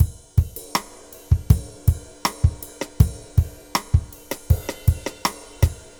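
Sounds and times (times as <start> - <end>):
boom bap drum loops: 0.0 - 5.9.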